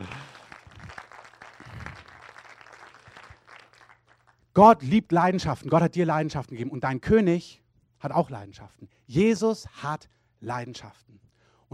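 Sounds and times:
audience applause: 0:00.0 - 0:04.4
speech: 0:04.6 - 0:11.2.

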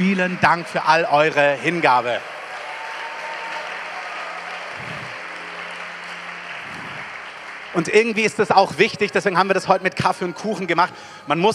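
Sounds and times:
speech: 0:00.0 - 0:02.4, 0:07.8 - 0:11.5
audience applause: 0:00.0 - 0:09.6.

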